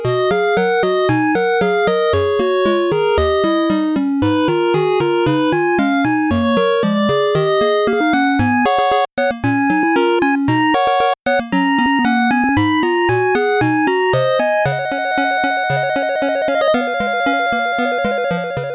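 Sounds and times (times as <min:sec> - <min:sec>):
fast 8-bit background music: 0:00.2 - 0:18.7.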